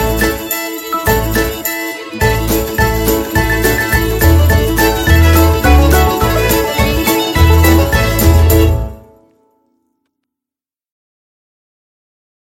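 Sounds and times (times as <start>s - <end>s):
nursery rhyme instrumental: 0.0s - 9.5s.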